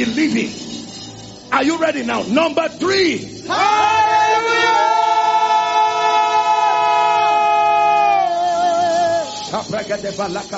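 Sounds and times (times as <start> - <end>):
speech: 0.0 - 0.7, 1.5 - 4.5, 9.5 - 10.5
crowd shouting together: 3.5 - 9.2.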